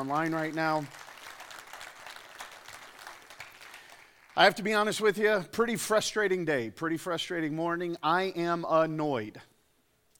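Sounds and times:
speech: 0:00.0 - 0:01.1, 0:04.4 - 0:09.5
church congregation applauding during a service: 0:00.0 - 0:05.2.

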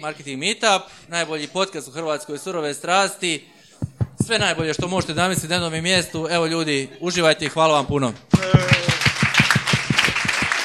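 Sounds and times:
speech: 0:00.0 - 0:03.6, 0:04.3 - 0:08.7
rhythmic clapping at a marketing meetup event in Croatia: 0:03.8 - 0:06.4, 0:07.9 - 0:10.6.

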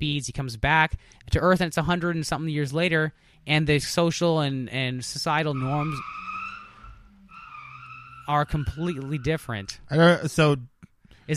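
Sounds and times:
speech: 0:00.0 - 0:06.2, 0:08.3 - 0:10.7
car burning out its tires in an alley: 0:04.7 - 0:10.1.

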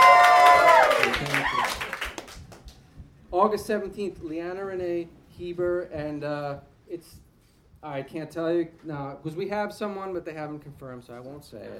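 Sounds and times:
audience cheering and clapping: 0:00.0 - 0:02.7
speech: 0:03.4 - 0:07.2, 0:07.8 - 0:11.7.

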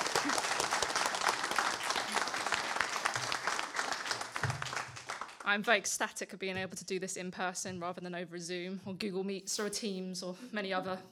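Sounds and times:
audience applause: 0:00.0 - 0:05.5
speech: 0:05.5 - 0:11.0.

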